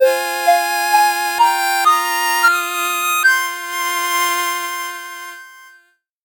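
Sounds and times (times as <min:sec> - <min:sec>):
8-bit jingle: 0:00.0 - 0:05.8.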